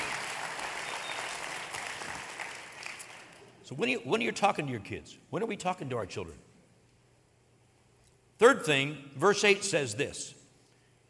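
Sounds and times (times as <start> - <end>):
audience applause: 0.0 - 3.4
speech: 3.7 - 6.5, 8.4 - 10.4.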